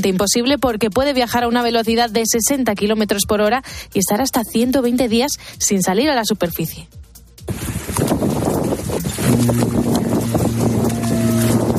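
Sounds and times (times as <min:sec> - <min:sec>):
speech: 0:00.0 - 0:07.0, 0:09.4 - 0:09.8
low mechanical drone with faint higher whine from a submarine: 0:07.5 - 0:11.7
rush of churning water and wind from a submarine under way: 0:07.5 - 0:11.7.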